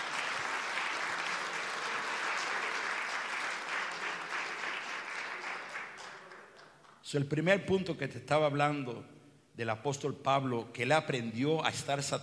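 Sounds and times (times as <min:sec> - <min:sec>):
loud audience applause: 0:00.0 - 0:07.0
speech: 0:07.1 - 0:12.2.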